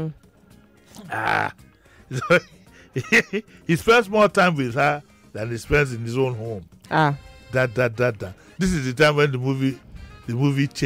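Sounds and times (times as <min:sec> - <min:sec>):
speech: 0:00.0 - 0:00.3, 0:01.0 - 0:10.8
person clearing throat: 0:01.0 - 0:01.5
laughter: 0:02.1 - 0:03.8.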